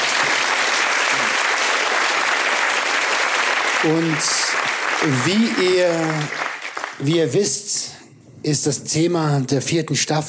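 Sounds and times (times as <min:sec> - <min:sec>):
audience applause: 0:00.0 - 0:07.2
speech: 0:03.8 - 0:06.4, 0:07.0 - 0:10.2.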